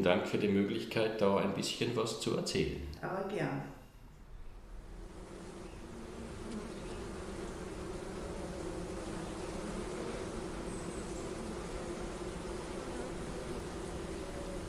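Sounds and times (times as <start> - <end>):
speech: 0.0 - 3.8
many bees buzzing outdoors: 4.3 - 14.6.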